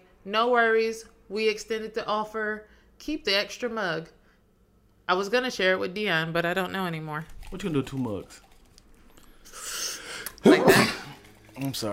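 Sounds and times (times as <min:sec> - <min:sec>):
speech: 0:00.2 - 0:04.2, 0:05.1 - 0:08.4, 0:11.6 - 0:11.9
sneeze: 0:10.4 - 0:11.2.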